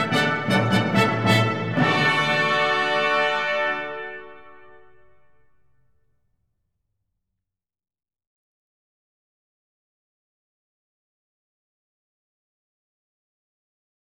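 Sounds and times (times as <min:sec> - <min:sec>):
concerto for three choirs in minuet tempo: 0:00.0 - 0:05.0.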